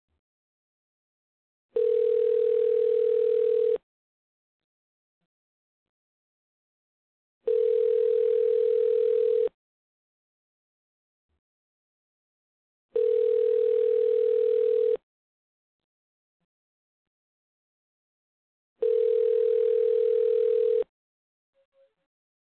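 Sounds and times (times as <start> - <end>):
telephone: 1.8 - 3.8, 7.5 - 9.6, 13.0 - 15.0, 18.8 - 20.9.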